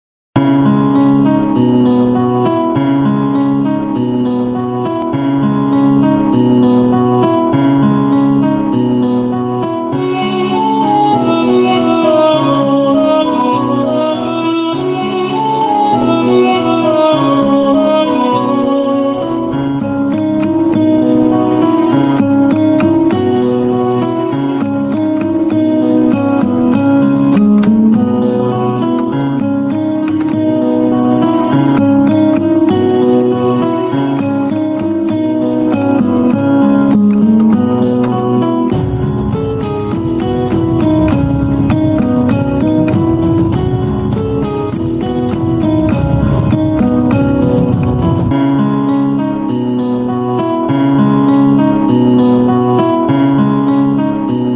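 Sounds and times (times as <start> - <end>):
sad Telugu background music ringtone: 0.6 - 54.5.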